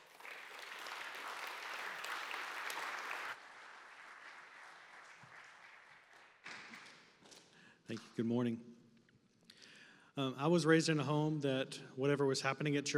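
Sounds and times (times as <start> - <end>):
audience applause welcoming two speakers at a church gathering: 0.0 - 6.8
speech: 7.9 - 8.7, 10.2 - 12.9.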